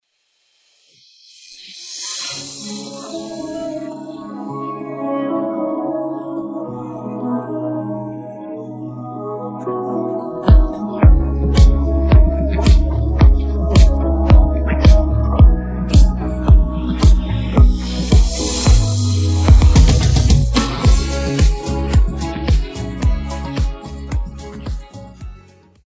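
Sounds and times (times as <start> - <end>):
pop beat: 10.5 - 25.5.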